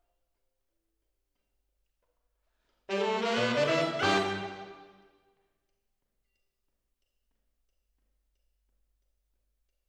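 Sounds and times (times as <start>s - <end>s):
piano recorded with MKH AB microphones: 2.9s - 4.9s.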